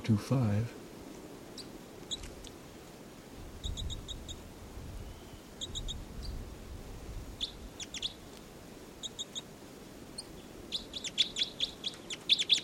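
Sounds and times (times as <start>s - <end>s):
caged bird chirping: 1.5s - 2.4s, 3.6s - 6.4s, 7.4s - 8.4s, 9.0s - 9.5s, 10.1s - 12.6s.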